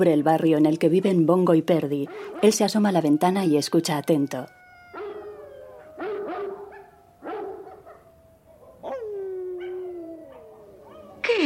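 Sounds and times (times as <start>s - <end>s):
speech: 0.0s - 4.6s
Great Dane howling in fog over a London neighbourhood: 2.1s - 11.2s.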